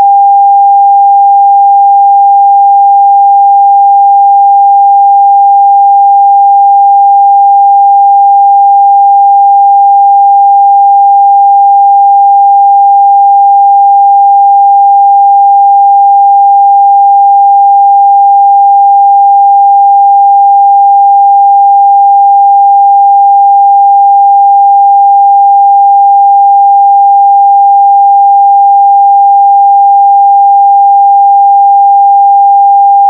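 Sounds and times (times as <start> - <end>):
sine 800 tone: 0.0 - 33.0.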